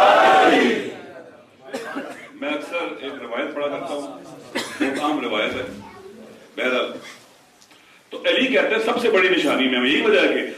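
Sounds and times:
crowd shouting a slogan in unison: 0.0 - 1.1
speech: 3.3 - 5.8, 6.6 - 7.2, 8.1 - 10.5.

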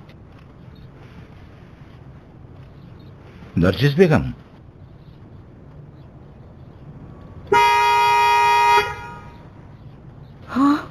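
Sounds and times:
speech: 3.6 - 4.4
car horn honking while being tested: 7.5 - 9.4.

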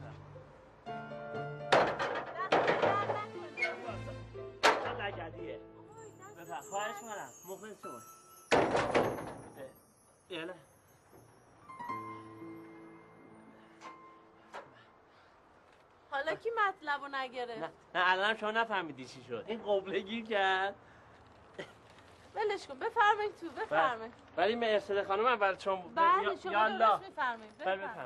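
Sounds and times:
door being shut with heavy thuds: 1.7 - 3.3, 4.6 - 5.3, 8.5 - 9.6
speech: 6.7 - 9.5, 10.3 - 10.7, 16.6 - 20.9, 22.4 - 28.0.

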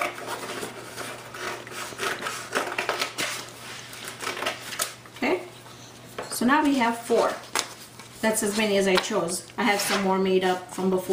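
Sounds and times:
scissors cutting folded construction paper: 0.0 - 5.0
speech: 6.4 - 7.5, 8.2 - 11.1.

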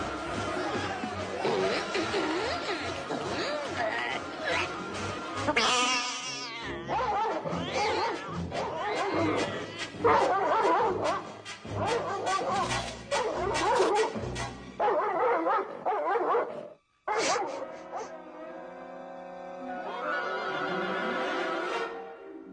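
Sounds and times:
laughter: 0.2 - 5.4, 19.8 - 21.7
royal guard dogs barking: 5.5 - 14.2, 14.8 - 18.2.

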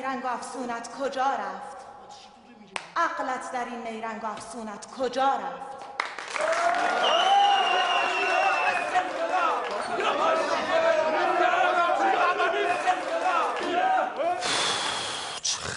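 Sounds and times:
speech: 0.1 - 2.2, 3.0 - 5.8
crowd clapping: 5.7 - 14.4.

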